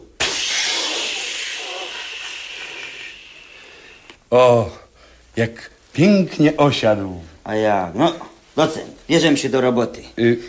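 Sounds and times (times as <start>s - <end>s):
air hissing out of tyre valve: 0.2s - 4.2s
speech: 4.3s - 4.8s, 5.4s - 10.4s.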